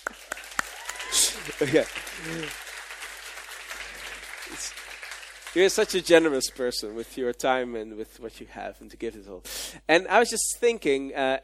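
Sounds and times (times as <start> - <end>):
church audience applause: 0.0 - 6.6
speech: 1.4 - 2.6, 5.5 - 11.4.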